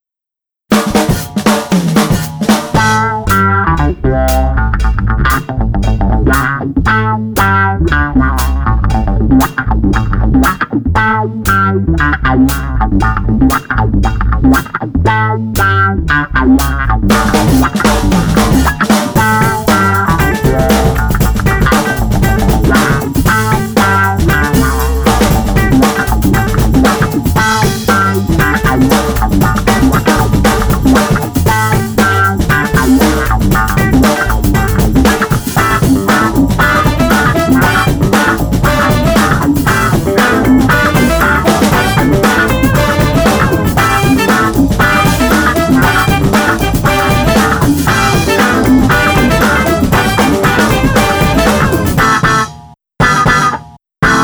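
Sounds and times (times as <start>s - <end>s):
funk rock blues club band without slide guitar: 0.7s - 54.2s.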